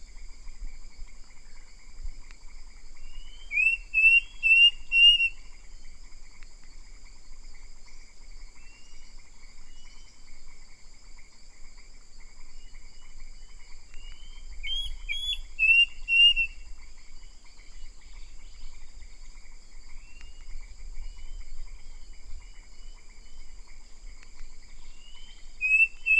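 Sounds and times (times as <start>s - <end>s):
bird giving short whistled calls: 3.0s - 5.6s, 13.9s - 16.7s, 24.8s - 26.1s.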